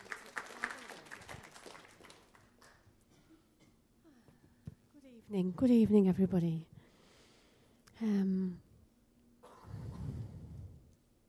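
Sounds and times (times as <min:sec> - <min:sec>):
audience applause: 0:00.0 - 0:02.8
speech: 0:05.3 - 0:06.7, 0:08.0 - 0:08.6.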